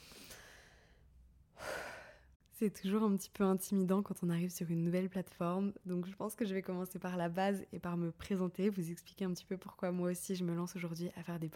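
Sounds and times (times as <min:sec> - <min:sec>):
deep breath in: 0:00.0 - 0:02.3
speech: 0:02.6 - 0:11.5.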